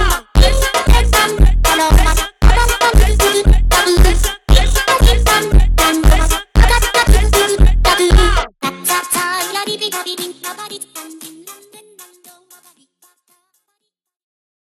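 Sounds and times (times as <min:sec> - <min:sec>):
slowed funk music: 0:00.0 - 0:11.2.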